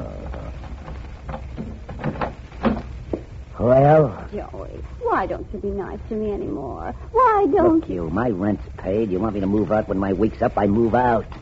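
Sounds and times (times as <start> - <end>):
door being unlatched and opened: 0.8 - 3.0
speech: 3.6 - 11.4.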